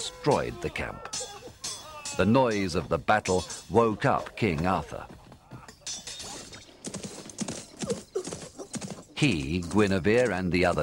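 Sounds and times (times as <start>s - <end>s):
speech: 0.2s - 1.2s, 2.2s - 5.2s, 9.2s - 10.8s
horses galloping: 2.3s - 10.8s.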